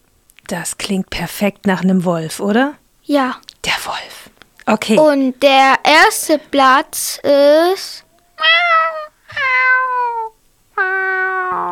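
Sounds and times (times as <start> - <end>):
speech: 0.5 - 8.8
kitten meowing: 8.4 - 11.7.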